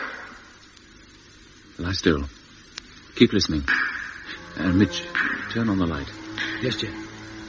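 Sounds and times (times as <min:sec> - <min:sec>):
speech: 0:01.9 - 0:02.4, 0:03.2 - 0:03.9, 0:04.6 - 0:07.0
tapping on a ship's hull: 0:03.7 - 0:06.6.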